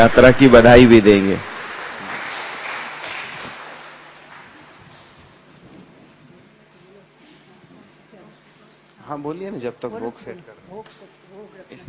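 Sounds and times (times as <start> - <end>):
speech: 0.0 - 1.5, 9.2 - 11.8
farewell applause: 0.0 - 5.2.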